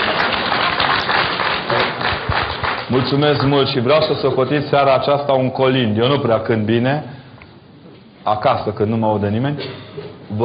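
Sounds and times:
audience applause in church: 0:00.0 - 0:03.6
speech: 0:02.9 - 0:07.2, 0:08.2 - 0:10.4.

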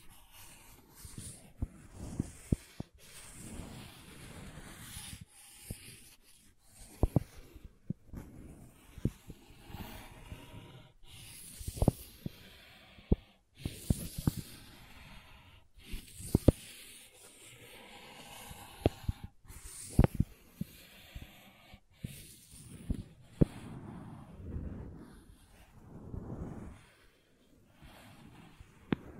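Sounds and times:
crayons tapping, scraping and dragging across a surface: 0:00.0 - 0:15.1, 0:15.8 - 0:20.8, 0:22.0 - 0:24.4.

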